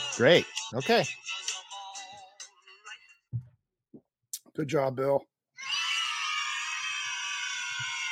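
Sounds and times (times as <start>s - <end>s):
speech: 0.2s - 1.3s, 4.6s - 5.3s
children cheering: 5.6s - 8.0s.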